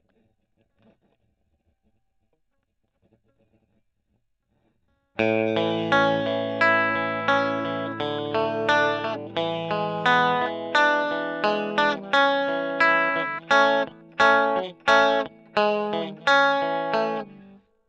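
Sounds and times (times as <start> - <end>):
electric guitar: 5.2 - 17.6.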